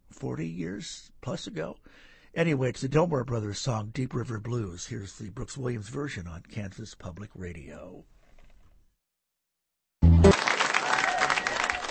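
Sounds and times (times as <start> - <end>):
speech: 0.2 - 8.2
live concert audience applause in Shreveport, Louisiana: 10.0 - 11.9.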